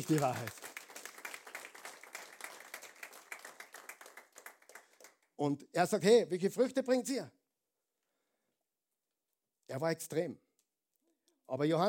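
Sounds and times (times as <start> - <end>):
speech: 0.0 - 0.6, 5.4 - 7.4, 9.7 - 10.4, 11.5 - 11.8
audience clapping: 0.0 - 5.4.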